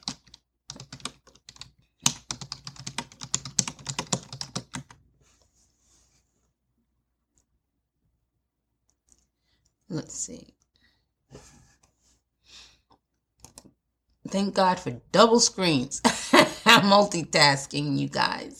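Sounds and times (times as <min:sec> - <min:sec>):
fast typing on a computer keyboard: 0:00.0 - 0:05.0, 0:13.4 - 0:13.7
speech: 0:10.0 - 0:10.6, 0:14.3 - 0:18.5.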